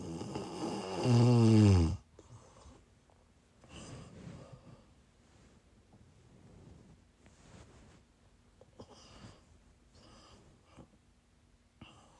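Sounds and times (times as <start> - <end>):
person snoring: 0.0 - 2.0
quiet breaths: 0.0 - 12.1.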